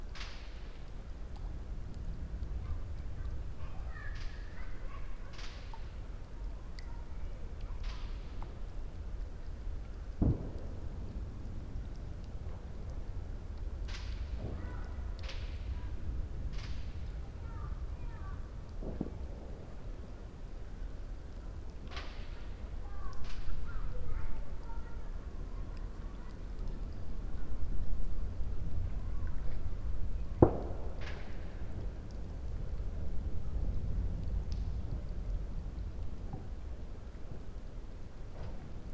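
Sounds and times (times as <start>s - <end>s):
campfire crackling: 0.0s - 38.9s
raindrops: 0.0s - 38.9s
child: 2.5s - 8.7s, 14.1s - 18.7s, 20.7s - 27.8s, 28.8s - 30.5s
fireworks: 10.2s - 10.8s, 18.8s - 19.6s, 30.4s - 31.9s.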